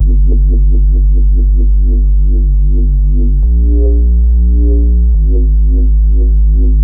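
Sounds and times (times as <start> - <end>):
bassline: 0.0 - 6.8.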